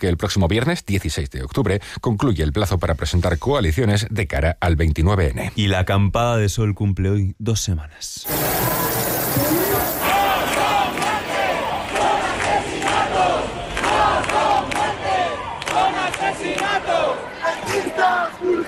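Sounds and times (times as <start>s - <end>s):
speech: 0.0s - 8.8s
angry protest crowd shouting: 8.3s - 18.6s.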